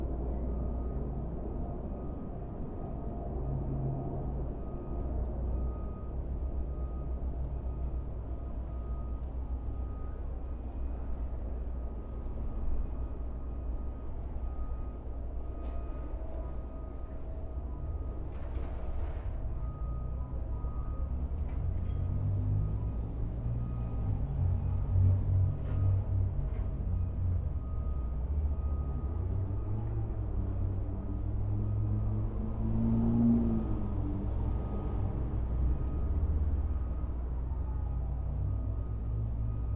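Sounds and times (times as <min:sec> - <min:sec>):
faint steady tone: 0:00.0 - 0:39.7
traffic and machinery rumble: 0:00.0 - 0:39.7.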